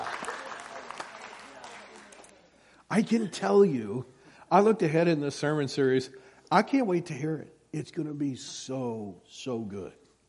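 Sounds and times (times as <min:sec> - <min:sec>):
applause: 0:00.0 - 0:02.6
speech: 0:02.9 - 0:10.0.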